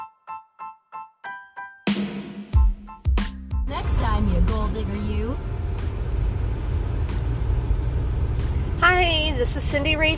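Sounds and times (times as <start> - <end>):
car interior while driving: 3.7 - 10.1
speech: 4.2 - 5.6, 8.8 - 10.1.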